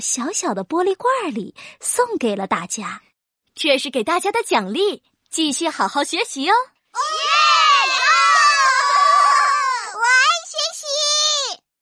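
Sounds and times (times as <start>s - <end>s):
speech: 0.0s - 7.2s
schoolchildren cheering: 7.0s - 10.4s.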